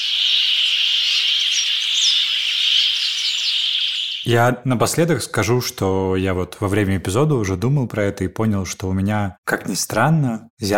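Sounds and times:
brambling flight calls: 0:00.0 - 0:04.3
speech: 0:04.3 - 0:10.7.

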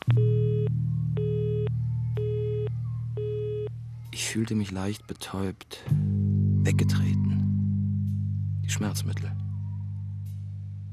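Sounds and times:
telephone line tone from a broken phone beeping: 0:00.0 - 0:03.7
low hum: 0:00.0 - 0:04.2, 0:06.0 - 0:10.9
speech: 0:04.2 - 0:07.4, 0:08.7 - 0:09.4.

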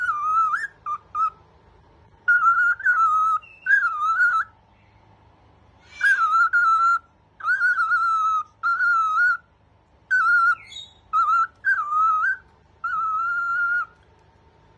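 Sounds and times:
cockatiel whistled song: 0:00.0 - 0:01.4, 0:02.2 - 0:04.9, 0:05.8 - 0:09.5, 0:10.1 - 0:14.0.

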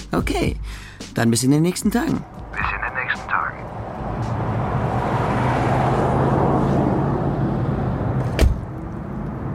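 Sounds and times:
speech: 0:00.1 - 0:02.3
car driving and parking: 0:01.4 - 0:09.5.

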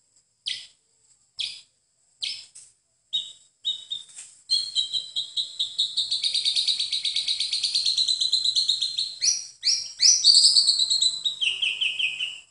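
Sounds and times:
White-rumped shama song with sustained wavering whistle: 0:00.4 - 0:00.8, 0:01.4 - 0:12.4.

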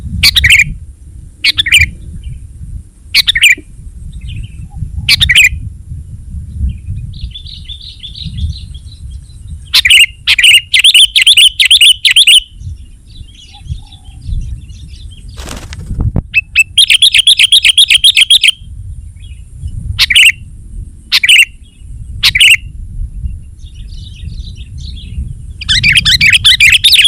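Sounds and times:
sooty-headed bulbul calls: 0:00.2 - 0:00.8, 0:01.4 - 0:02.0, 0:03.1 - 0:05.6, 0:07.1 - 0:15.6, 0:16.3 - 0:18.6, 0:20.0 - 0:20.4, 0:21.1 - 0:22.7, 0:23.6 - 0:27.0.

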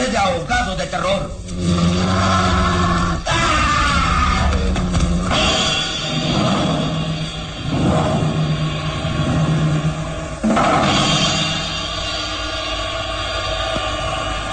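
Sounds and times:
dense rumbling background: 0:00.0 - 0:14.5
wolf-man snarling and growling while attacking: 0:01.4 - 0:10.4.

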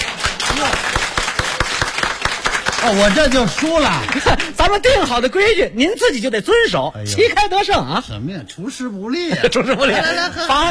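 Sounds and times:
audience clapping during a comic crosstalk dialogue: 0:00.0 - 0:05.1
speech: 0:02.8 - 0:10.6
laughter: 0:03.7 - 0:04.8, 0:09.2 - 0:10.6.

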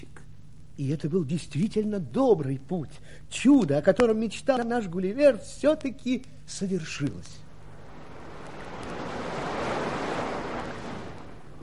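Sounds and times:
speech: 0:00.8 - 0:07.4
faint windy rumble: 0:07.5 - 0:11.6
waves breaking: 0:07.6 - 0:11.6
sea surf: 0:07.7 - 0:11.6.

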